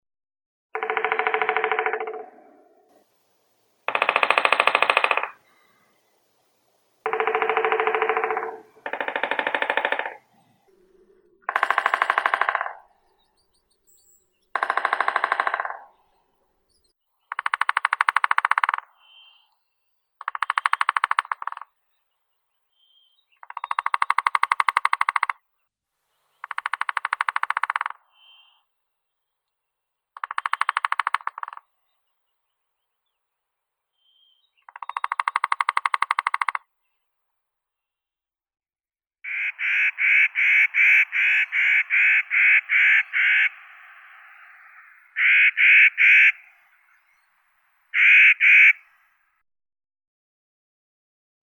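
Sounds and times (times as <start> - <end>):
three-toed woodpecker Picoides tridactylus: 0.8 - 3.0, 3.9 - 6.1, 7.0 - 22.2, 22.8 - 25.4, 26.4 - 28.7, 30.2 - 33.2, 34.0 - 37.0, 39.2 - 47.3, 47.9 - 49.0.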